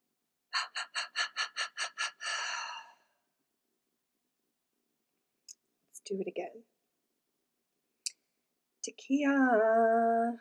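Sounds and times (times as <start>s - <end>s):
speech: 0.6s - 1.3s, 6.1s - 6.8s, 8.9s - 10.3s
short sharp breaths in a guided breathing exercise: 0.6s - 3.0s.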